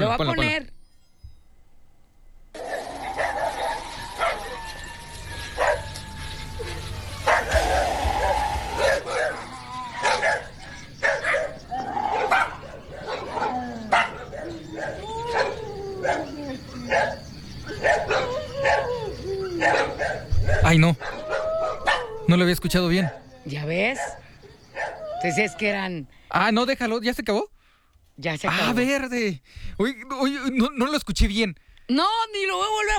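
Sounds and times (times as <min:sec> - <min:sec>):
speech: 0:00.1 - 0:00.8, 0:22.4 - 0:24.2, 0:25.2 - 0:27.5, 0:28.2 - 0:32.9
dogs barking and whimpering at night: 0:02.5 - 0:26.3.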